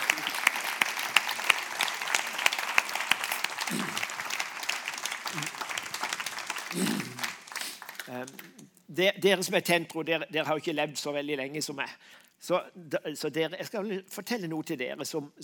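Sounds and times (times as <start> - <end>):
audience applause: 0.0 - 8.5
speech: 8.1 - 15.4.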